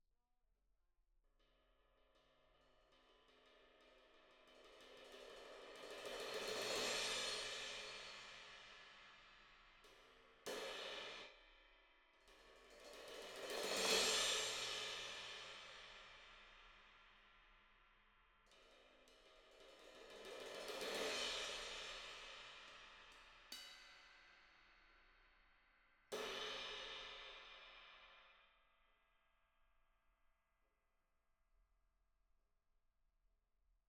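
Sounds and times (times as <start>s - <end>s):
cymbal: 2.5s - 28.6s.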